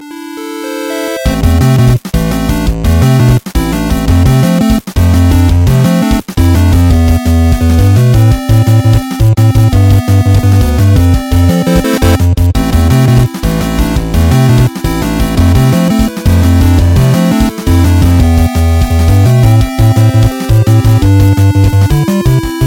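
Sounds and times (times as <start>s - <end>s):
8-bit music: 0.0s - 22.6s.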